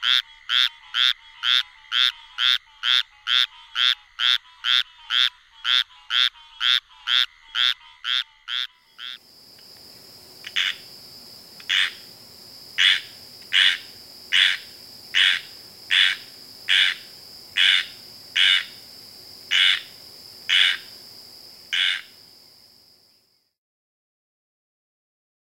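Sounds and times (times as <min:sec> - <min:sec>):
squirrel treefrog calling: 0:00.0 - 0:09.3, 0:10.4 - 0:11.0, 0:11.6 - 0:21.1, 0:21.7 - 0:22.4.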